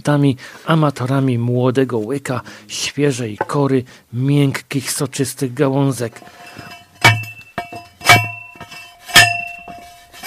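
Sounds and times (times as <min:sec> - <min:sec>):
speech: 0:00.0 - 0:06.7
metal cylindrical hand post driver pounding stakes: 0:06.2 - 0:10.2.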